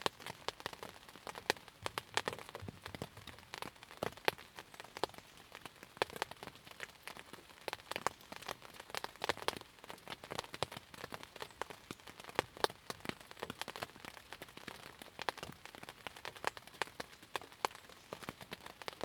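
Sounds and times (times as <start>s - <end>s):
light rain on tent: 0.0s - 19.0s.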